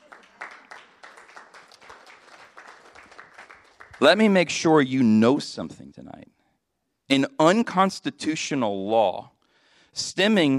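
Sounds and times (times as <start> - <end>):
audience clapping: 0.0 - 4.4
speech: 4.0 - 6.4, 7.1 - 10.5.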